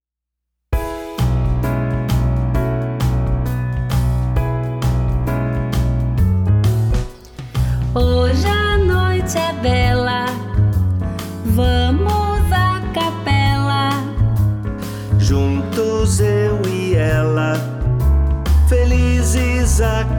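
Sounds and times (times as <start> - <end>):
jazzy Christmas tune on bass: 0.8 - 20.1.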